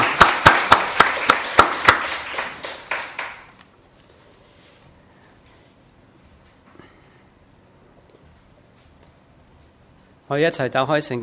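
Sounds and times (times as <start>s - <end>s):
sharp evenly timed claps: 0.0s - 3.6s
speech: 10.3s - 11.2s.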